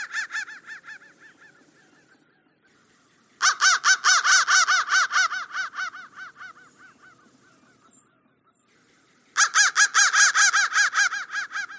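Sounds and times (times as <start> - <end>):
crow cawing: 0.0 - 1.8, 3.4 - 7.4, 9.4 - 11.7.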